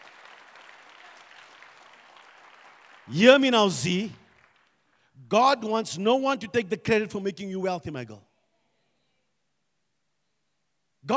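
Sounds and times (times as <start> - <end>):
audience clapping: 0.0 - 5.2
speech: 3.1 - 4.2, 5.3 - 8.3.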